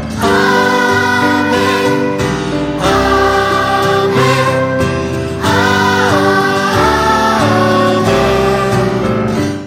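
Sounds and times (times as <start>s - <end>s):
vocal choir singing: 0.2s - 9.5s.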